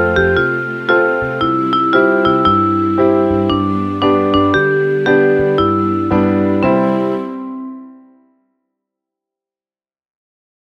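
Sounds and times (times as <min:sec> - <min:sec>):
piano ensemble playing: 0:00.0 - 0:08.2.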